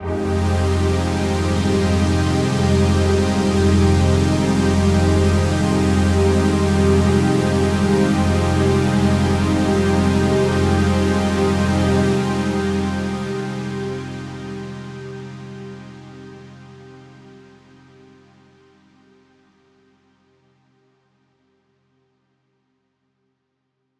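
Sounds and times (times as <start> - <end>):
synth pad in F: 0.0 - 17.8.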